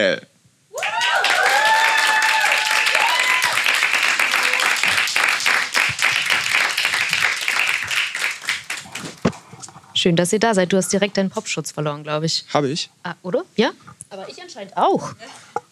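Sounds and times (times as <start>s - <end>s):
speech: 0.0s - 0.3s, 10.0s - 15.5s
audience applause: 0.8s - 9.3s.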